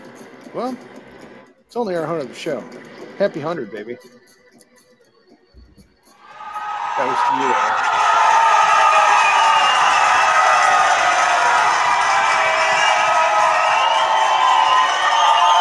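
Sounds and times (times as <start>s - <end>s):
speech: 0.5s - 1.0s, 1.7s - 4.4s, 7.0s - 7.9s
cheering crowd sound effect from button: 6.2s - 15.5s.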